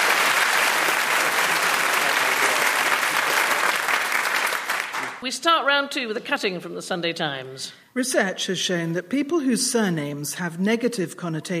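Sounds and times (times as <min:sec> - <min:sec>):
audience applause: 0:00.0 - 0:05.2
speech: 0:05.2 - 0:11.5.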